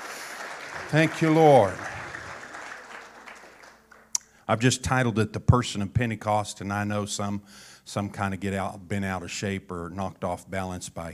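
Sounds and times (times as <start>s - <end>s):
audience clapping hands in praise: 0.0s - 4.2s
speech: 0.9s - 1.9s, 4.5s - 11.1s.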